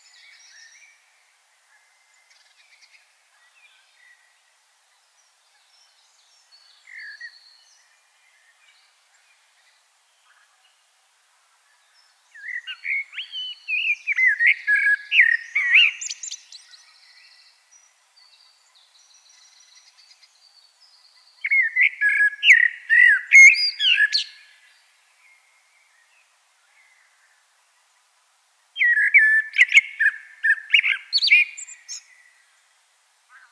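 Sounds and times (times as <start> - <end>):
common blackbird singing: 0.0 - 10.8, 11.7 - 27.4, 28.8 - 32.7.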